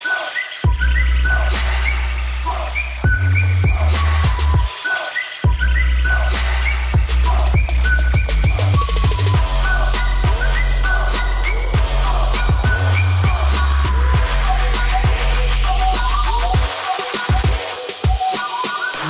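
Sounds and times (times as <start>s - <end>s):
WhatsApp whistle remix: 0.0s - 19.0s.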